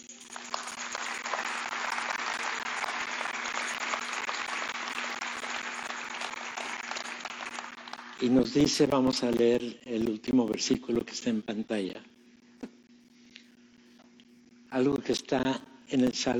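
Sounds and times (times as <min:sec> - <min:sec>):
audience applauding: 0:00.0 - 0:08.8
speech: 0:08.2 - 0:12.1, 0:14.8 - 0:16.3.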